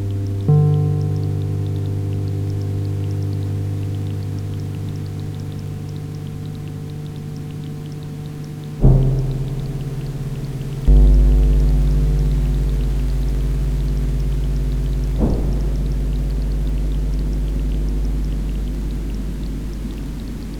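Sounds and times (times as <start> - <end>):
faint hiss of rain: 0.0 - 20.5
sustained low chords: 0.0 - 20.5
sharp hits: 8.8 - 20.5.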